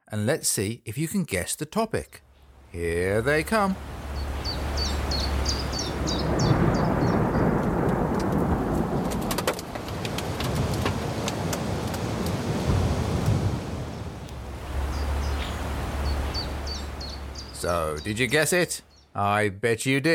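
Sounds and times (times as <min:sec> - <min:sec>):
speech: 0:00.1 - 0:04.0, 0:17.6 - 0:20.1
high chirping birdsong: 0:01.8 - 0:19.3
steady rainfall: 0:02.2 - 0:19.0
deep rumbling thunder: 0:03.8 - 0:17.7
sharp crackles: 0:04.0 - 0:18.8.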